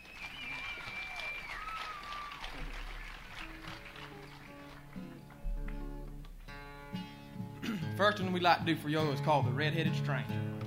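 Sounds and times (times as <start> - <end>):
audience applause: 0.0 - 6.1
speech: 8.0 - 10.5.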